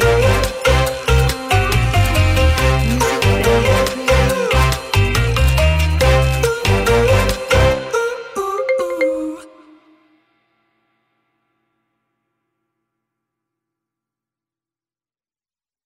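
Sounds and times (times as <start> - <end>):
fun and quirky retro music: 0.0 - 9.8.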